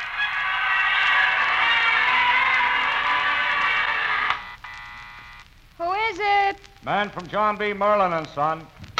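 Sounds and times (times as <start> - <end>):
large crowd roar of overlapping voices in Times Square awaiting New Year: 0.1 - 4.3
speech: 6.8 - 8.8.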